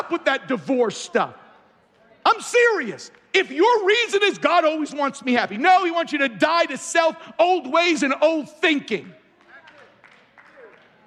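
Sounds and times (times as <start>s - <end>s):
speech: 0.1s - 1.4s, 2.3s - 9.2s
scattered hand claps: 9.3s - 11.0s.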